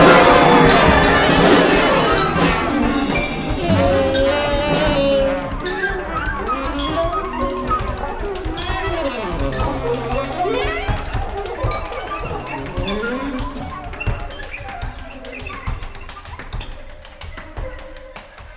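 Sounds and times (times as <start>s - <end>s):
symphony orchestra playing contemporary experimental improvised jazz: 0.0s - 11.6s.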